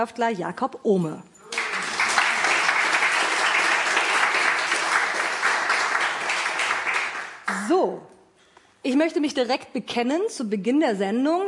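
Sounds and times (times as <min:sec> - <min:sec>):
speech: 0:00.0 - 0:01.3, 0:07.6 - 0:08.1, 0:08.8 - 0:11.4
audience applause: 0:01.4 - 0:07.6.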